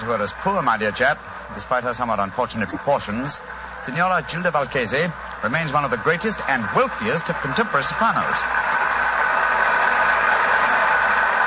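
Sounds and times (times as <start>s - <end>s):
speech: 0.1s - 8.6s
opera audience applause: 5.9s - 11.4s.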